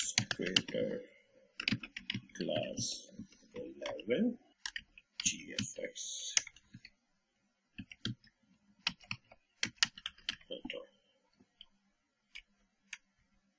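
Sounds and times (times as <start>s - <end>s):
typing text on a computer keyboard in Adobe Illustrator: 0.1s - 0.8s, 1.6s - 3.3s, 4.6s - 5.7s, 7.8s - 10.5s
speech: 0.4s - 1.2s, 2.4s - 4.4s, 5.2s - 6.4s.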